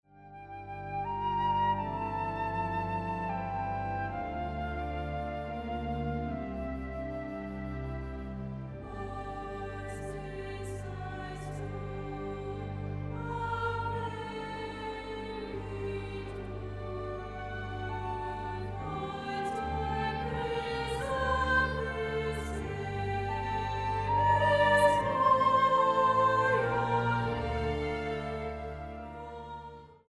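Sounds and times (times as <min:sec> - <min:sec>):
carol: 0:00.4 - 0:30.0.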